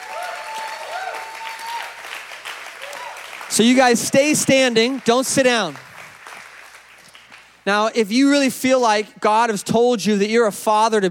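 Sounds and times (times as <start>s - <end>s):
high-pitched whoops or whistles: 0.0s - 2.1s, 2.8s - 3.3s
audience cheering: 0.0s - 5.0s
audience applause: 0.0s - 7.5s
speech: 3.5s - 5.9s, 7.7s - 11.0s.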